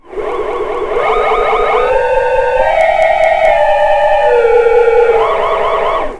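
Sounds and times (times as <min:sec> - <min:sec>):
space alarm: 0:00.0 - 0:06.1.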